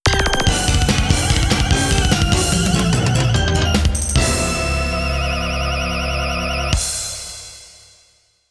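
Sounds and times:
game start jingle on Roland GS synthesizer: 0.0 - 7.5.

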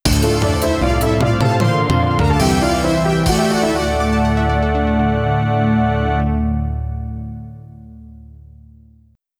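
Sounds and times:
Roland LA synth stage complete jingle: 0.1 - 7.5.

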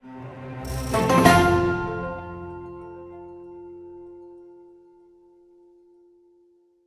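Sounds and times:
chest opened stinger: 0.7 - 3.1.

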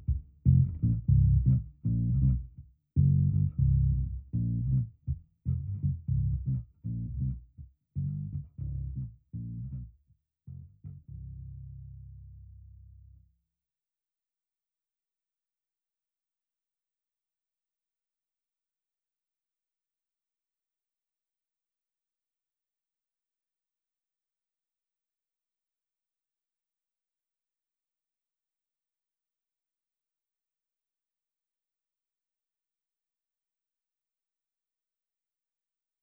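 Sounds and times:
double basses: 0.0 - 9.9, 10.5 - 13.2.

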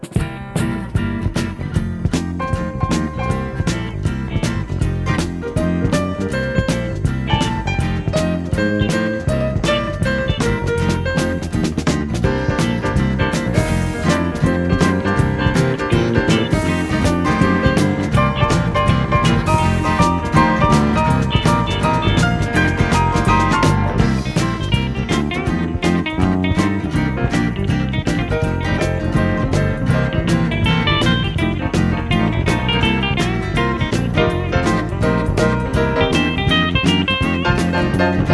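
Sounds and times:
disco music: 0.0 - 38.3.

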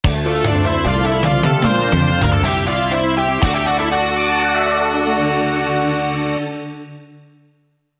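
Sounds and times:
Roland GS game stage complete jingle: 0.0 - 6.8.

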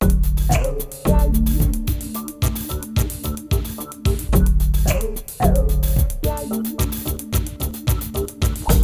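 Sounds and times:
music: 0.0 - 8.8.

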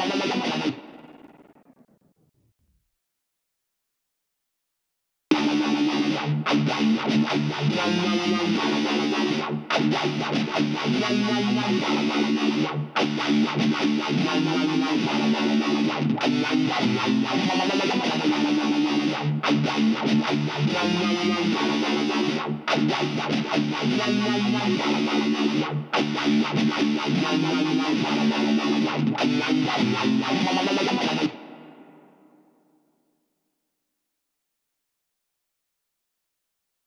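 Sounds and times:
guitars: 0.0 - 2.4, 5.3 - 32.1.

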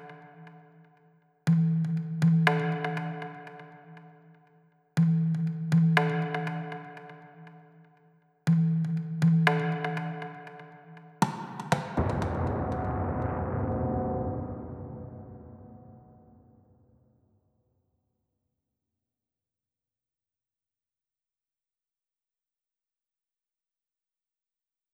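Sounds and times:
drums at 120 BPM: 1.5 - 3.6, 5.0 - 7.1, 8.5 - 10.6, 11.2 - 16.4.

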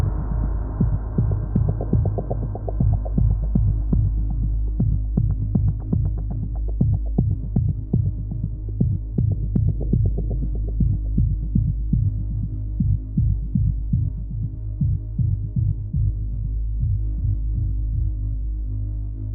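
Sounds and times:
synth pad three semitones down: 0.0 - 19.3.

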